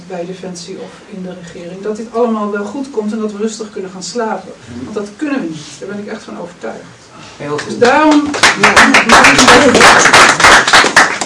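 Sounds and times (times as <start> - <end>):
speech: 0.1 - 10.9
audience applause: 8.1 - 11.2.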